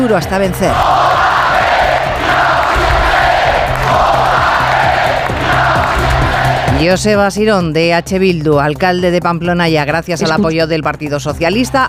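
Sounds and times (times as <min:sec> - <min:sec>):
speech: 0:00.1 - 0:01.0, 0:06.8 - 0:11.8
large crowd shouting rhythmic political chants: 0:00.7 - 0:06.7.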